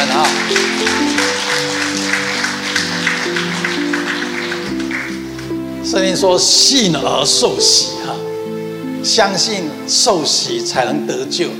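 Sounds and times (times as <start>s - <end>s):
audience applause: 0.0s - 6.3s
sustained keyboard or organ chords: 0.0s - 11.5s
speech: 6.0s - 8.2s, 9.0s - 11.5s.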